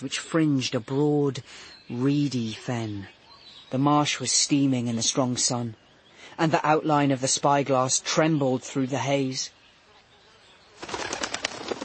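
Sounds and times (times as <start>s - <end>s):
speech: 0.0s - 9.6s
wild duck wings flapping as it flies up from a reedy fen: 10.8s - 11.8s.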